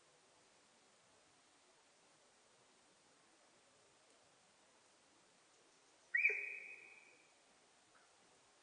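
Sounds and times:
sika deer whistle call: 0:06.2 - 0:07.1.

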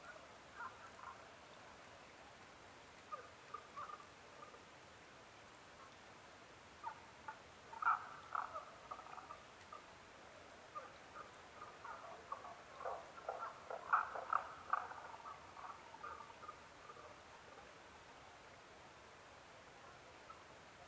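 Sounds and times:
Tago's brown frog croaking: 0:00.0 - 0:01.2, 0:03.1 - 0:04.6, 0:06.8 - 0:10.0, 0:10.7 - 0:17.9
background hiss: 0:00.0 - 0:20.8.

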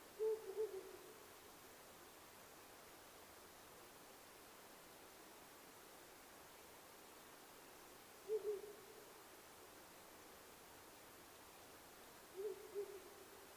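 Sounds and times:
owl giving low soft hoots: 0:00.2 - 0:01.3, 0:08.2 - 0:09.0, 0:12.4 - 0:13.4.

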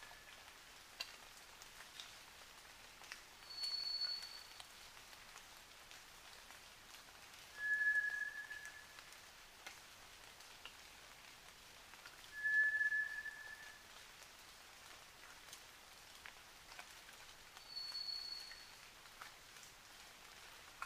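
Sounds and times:
White's thrush singing flat drawn-out whistles at night: 0:07.6 - 0:08.9, 0:12.4 - 0:13.8, 0:17.7 - 0:18.6.

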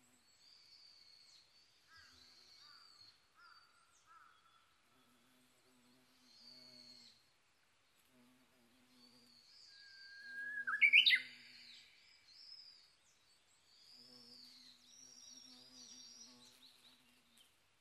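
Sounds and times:
Japanese bush warbler whistle phrase: 0:10.1 - 0:11.3.

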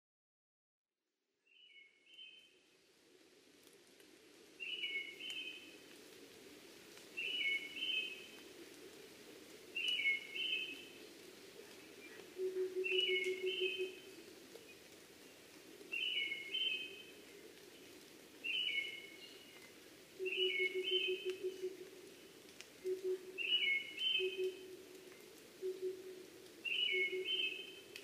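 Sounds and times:
Brown-headed thrush whistled song: 0:04.6 - 0:05.8, 0:07.2 - 0:08.4, 0:09.8 - 0:11.0, 0:12.0 - 0:14.8, 0:15.9 - 0:17.2, 0:18.4 - 0:19.6, 0:20.2 - 0:21.8, 0:22.8 - 0:24.8, 0:25.6 - 0:28.0.

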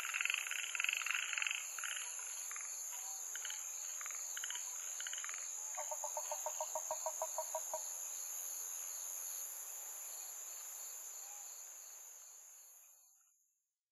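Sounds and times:
Yaeyama harabuti gaeru frog calling: 0:00.0 - 0:07.9.

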